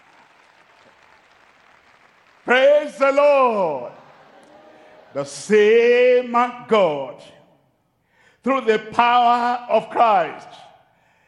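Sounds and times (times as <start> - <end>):
audience clapping hands: 0.0 - 5.7
speech: 2.5 - 4.0, 5.1 - 7.4, 8.4 - 10.6.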